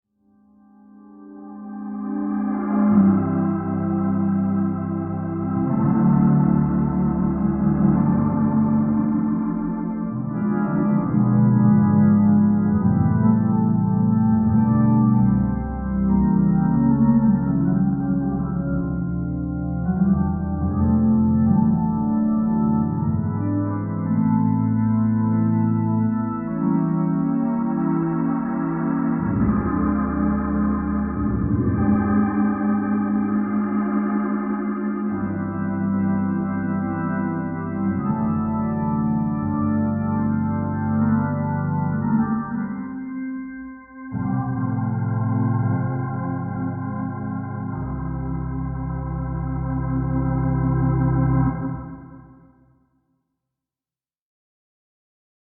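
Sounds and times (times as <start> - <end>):
instrumental interlude: 0.3 - 52.6.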